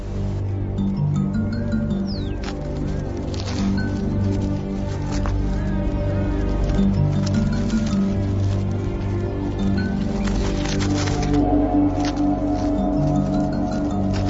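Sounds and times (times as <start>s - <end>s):
ants dragging insects: 0.0s - 14.2s.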